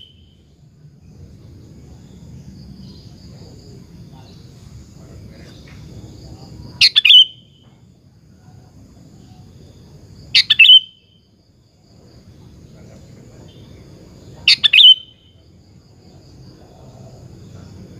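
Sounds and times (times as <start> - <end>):
sooty-headed bulbul singing bubbling phrases: 6.8 - 7.6, 10.4 - 11.2, 14.5 - 15.4.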